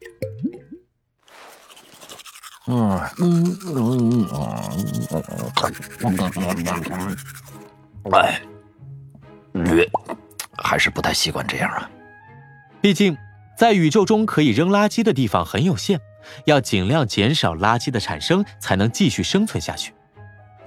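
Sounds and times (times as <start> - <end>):
toothbrush bristles scrubbing as someone brushes teeth on the moon: 1.3 - 7.7
voiced, throaty sounds from the brusher: 1.6 - 7.6
speech: 2.7 - 8.5, 9.7 - 10.0, 10.8 - 12.0, 12.8 - 20.0.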